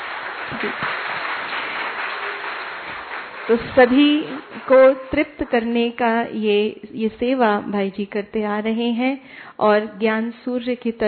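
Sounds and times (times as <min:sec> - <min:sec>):
audience applause: 0:00.0 - 0:05.0
speech: 0:00.5 - 0:01.0, 0:03.5 - 0:11.0.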